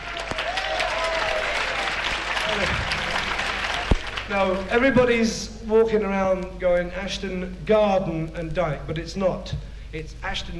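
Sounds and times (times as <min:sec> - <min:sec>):
audience applause: 0:00.0 - 0:04.9
speech: 0:04.3 - 0:10.5.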